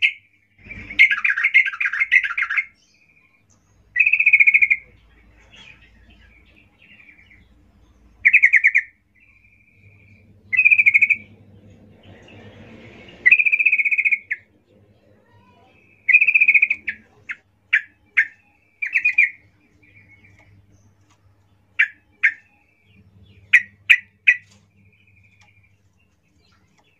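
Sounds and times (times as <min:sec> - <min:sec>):
Yellow-vented Bulbul chattering song: 0:00.0 - 0:26.9.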